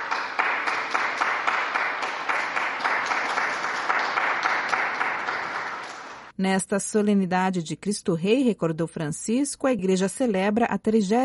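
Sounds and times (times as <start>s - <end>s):
crowd applause: 0.0s - 6.3s
speech: 6.4s - 11.2s.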